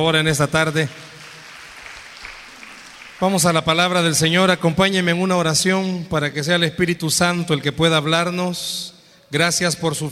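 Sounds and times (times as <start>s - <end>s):
speech: 0.0s - 1.0s, 3.2s - 10.1s
audience applause: 0.0s - 4.0s.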